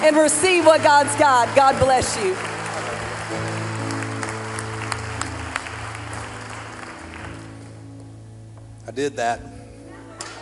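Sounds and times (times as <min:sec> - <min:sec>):
speech: 0:00.0 - 0:02.5, 0:09.0 - 0:09.5
audience applause: 0:00.0 - 0:07.8
held keyboard or organ chords droning: 0:00.0 - 0:09.9.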